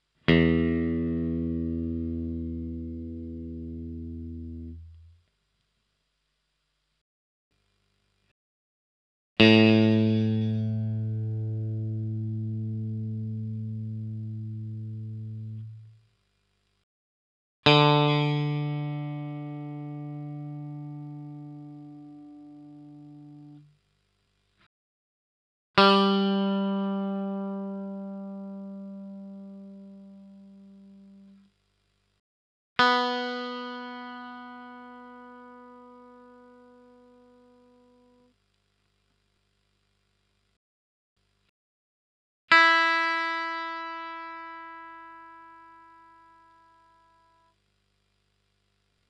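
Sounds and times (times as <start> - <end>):
electric guitar: 0.3 - 5.1, 9.4 - 15.9, 17.6 - 23.6, 25.8 - 31.4, 32.8 - 38.2, 42.5 - 47.3.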